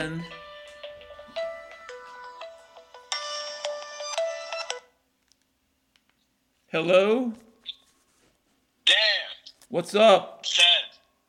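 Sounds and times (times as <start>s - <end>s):
speech: 0.0s - 0.4s, 6.7s - 7.5s, 8.9s - 10.9s
electronic phone ringtone for an incoming call: 0.0s - 4.9s.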